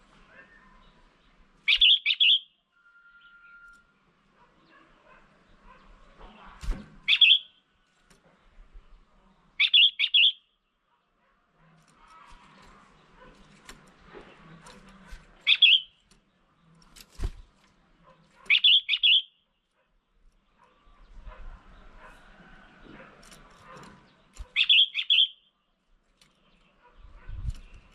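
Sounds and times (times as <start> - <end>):
red-whiskered bulbul chirping calls: 1.6 - 2.6, 7.0 - 7.6, 9.6 - 10.6, 15.4 - 16.0, 18.4 - 19.4, 24.4 - 25.5.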